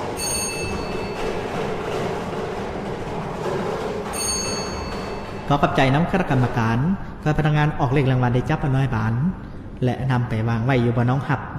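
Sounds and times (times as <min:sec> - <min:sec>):
lottery ball drum spinning: 0:00.0 - 0:08.8
speech: 0:05.5 - 0:11.5.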